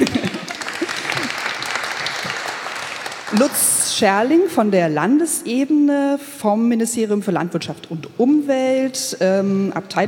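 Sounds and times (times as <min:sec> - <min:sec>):
laughter: 0:00.0 - 0:01.6
audience applause: 0:00.0 - 0:03.9
speech: 0:03.3 - 0:10.0.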